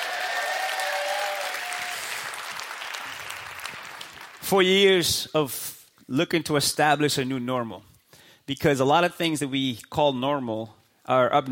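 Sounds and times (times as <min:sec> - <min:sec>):
audience applauding: 0:00.0 - 0:04.4
speech: 0:04.5 - 0:07.9, 0:08.5 - 0:11.5.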